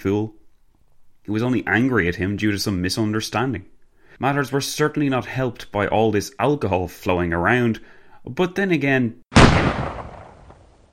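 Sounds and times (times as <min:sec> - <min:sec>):
speech: 0:00.0 - 0:00.4, 0:01.2 - 0:09.8
gunshot: 0:09.3 - 0:10.9.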